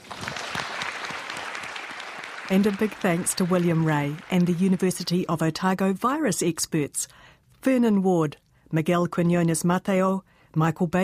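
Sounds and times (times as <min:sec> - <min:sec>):
audience applause: 0:00.0 - 0:05.3
speech: 0:02.5 - 0:11.0.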